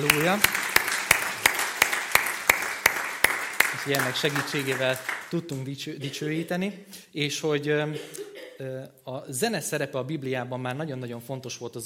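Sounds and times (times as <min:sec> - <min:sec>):
speech: 0:00.0 - 0:00.7, 0:03.8 - 0:11.8
audience applause: 0:00.0 - 0:05.4.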